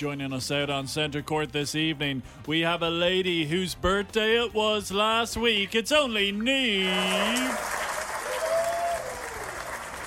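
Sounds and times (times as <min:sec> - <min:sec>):
speech: 0:00.0 - 0:07.8
crowd applause sound effect: 0:06.8 - 0:10.0
faint tonal whistle or cheer: 0:08.2 - 0:09.6.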